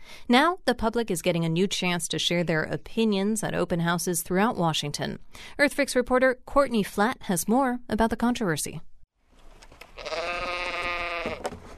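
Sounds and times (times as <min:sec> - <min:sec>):
speech: 0:00.3 - 0:08.9, 0:10.0 - 0:10.2
pregnant ewes bleating: 0:10.0 - 0:11.5.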